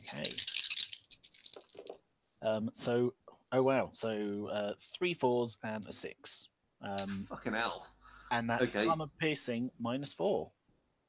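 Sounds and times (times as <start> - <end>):
dice being rolled: 0.0 - 2.0
speech: 2.4 - 10.6.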